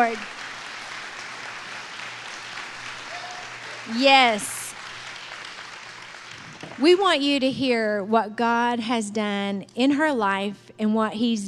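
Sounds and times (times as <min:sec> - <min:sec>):
speech: 0:00.0 - 0:00.4, 0:03.9 - 0:04.6, 0:06.8 - 0:11.4
church audience applauding to welcome a guest: 0:00.0 - 0:07.0.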